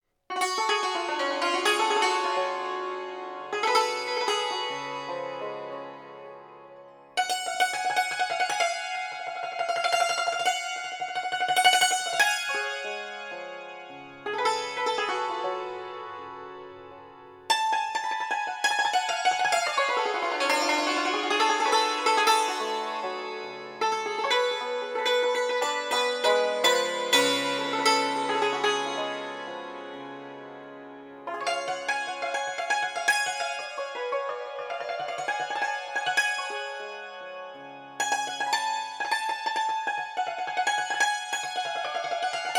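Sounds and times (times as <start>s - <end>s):
santur solo: 0.3s - 42.5s.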